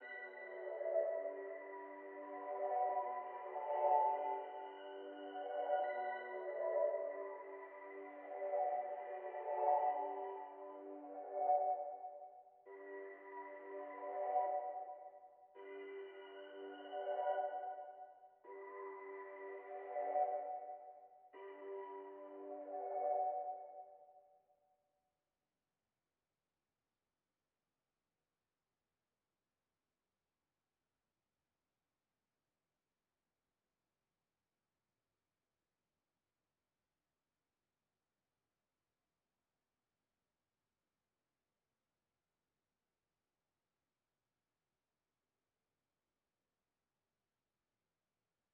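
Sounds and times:
166 BPM B minor music: 0:00.0 - 0:24.5.

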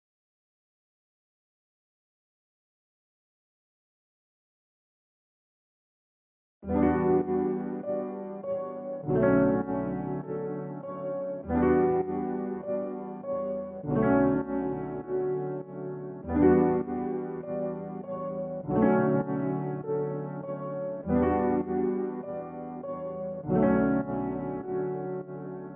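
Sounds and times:
100 BPM E minor piano loop: 0:06.7 - 0:25.7.

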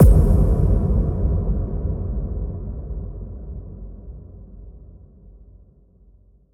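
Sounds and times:
impact: 0:00.0 - 0:04.6.

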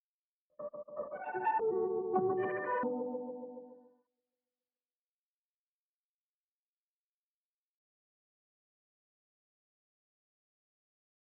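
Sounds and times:
97 BPM music in E minor: 0:00.6 - 0:03.9.

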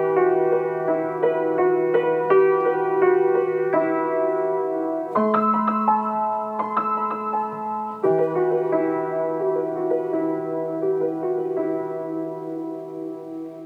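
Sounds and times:
piano in D sharp minor at 84 BPM: 0:00.0 - 0:13.6.

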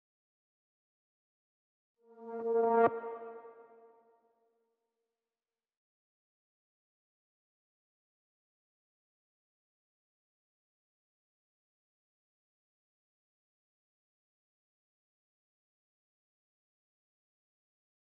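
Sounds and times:
synth riser melody in A-sharp minor: 0:02.1 - 0:03.6.

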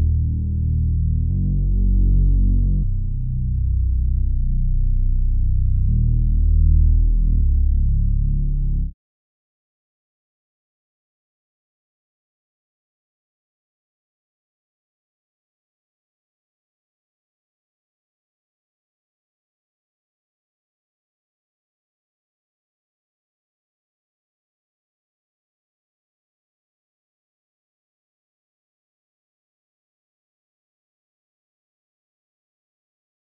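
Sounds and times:
R and B bass melody loop: 0:00.0 - 0:08.8.

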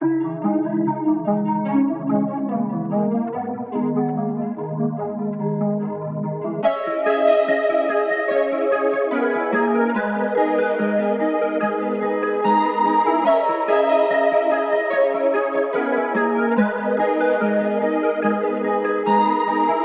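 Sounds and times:
hip hop melody at 145 BPM in G sharp minor: 0:00.0 - 0:19.8.

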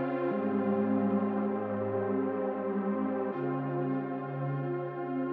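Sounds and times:
80 BPM F minor lofi synth pad melody loop: 0:00.0 - 0:05.2.

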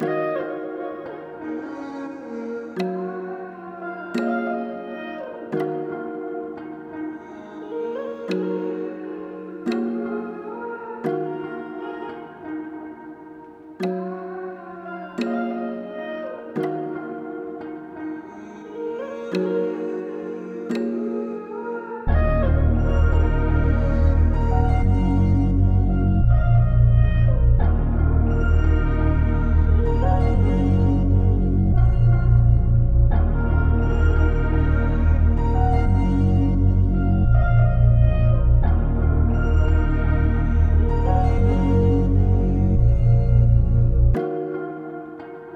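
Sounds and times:
RnB melody in A sharp minor: 0:00.0 - 0:45.5.

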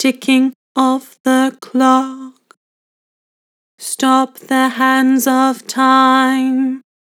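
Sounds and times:
person singing with vibrato: 0:00.0 - 0:02.4, 0:03.8 - 0:06.8.

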